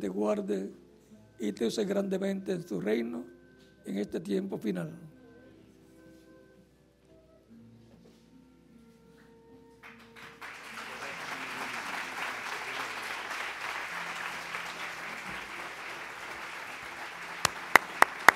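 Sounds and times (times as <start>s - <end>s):
speech: 0.0s - 0.8s, 1.4s - 5.1s
loud applause from audience: 9.8s - 18.3s.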